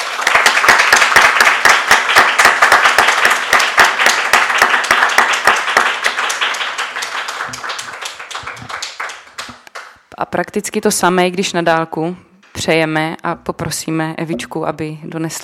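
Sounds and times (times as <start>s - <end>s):
audience applause: 0.0s - 9.9s
speech: 10.2s - 15.4s.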